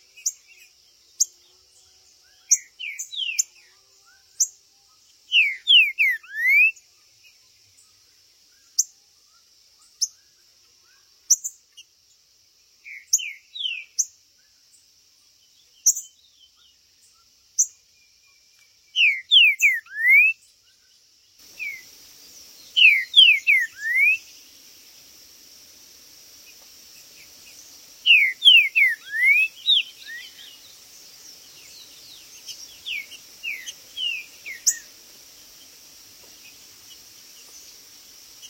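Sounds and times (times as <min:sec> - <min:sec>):
steady high hiss: 0:00.0 - 0:38.4
Green-winged saltator whistles: 0:05.3 - 0:06.8, 0:19.0 - 0:20.4, 0:22.8 - 0:24.3, 0:28.0 - 0:30.6.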